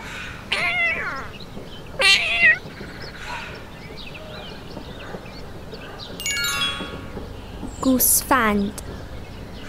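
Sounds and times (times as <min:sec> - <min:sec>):
cat meowing: 0:00.5 - 0:01.3, 0:02.0 - 0:02.6
speech: 0:07.9 - 0:08.9.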